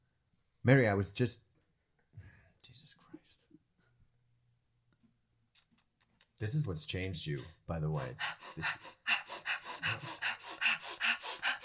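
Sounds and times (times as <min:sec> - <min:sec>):
speech: 0:00.6 - 0:01.5, 0:06.4 - 0:09.0, 0:09.8 - 0:10.3
rapid nasal breath of fire breathing: 0:08.0 - 0:11.6.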